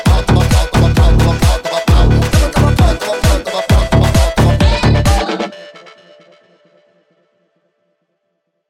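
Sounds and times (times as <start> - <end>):
mega funk music: 0.0 - 5.7.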